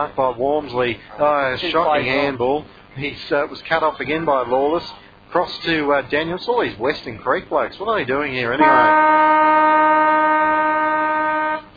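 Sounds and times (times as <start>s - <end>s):
speech: 0.0s - 9.4s
half time siren blaring at football ground: 8.6s - 11.6s.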